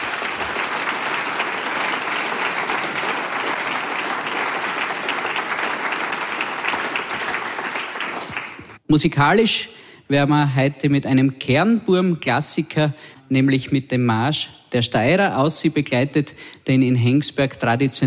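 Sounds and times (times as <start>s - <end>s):
audience applause: 0.0s - 8.8s
speech: 8.9s - 18.0s.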